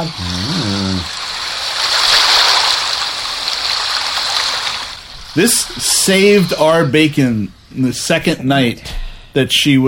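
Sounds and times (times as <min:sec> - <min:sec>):
speech: 0:00.0 - 0:01.2, 0:05.4 - 0:09.8
rushing water from a white noise app: 0:00.0 - 0:07.0.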